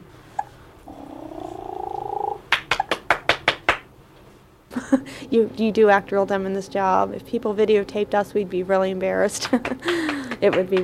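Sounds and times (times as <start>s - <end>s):
woman imitating purring: 0.9s - 2.5s
hand clapping: 2.5s - 3.9s, 9.4s - 10.8s
speech: 4.9s - 10.8s.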